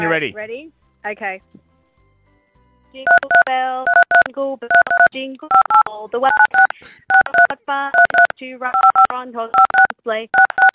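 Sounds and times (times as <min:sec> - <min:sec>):
speech: 0:00.0 - 0:01.6, 0:02.9 - 0:10.7
phone keypad tones playing a tune: 0:03.0 - 0:10.7.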